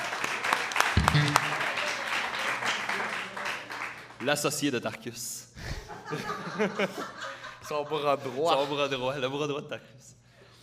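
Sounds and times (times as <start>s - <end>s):
audience applause: 0.0s - 4.2s
speech: 4.2s - 5.4s, 6.1s - 10.1s
laughter: 5.6s - 9.2s.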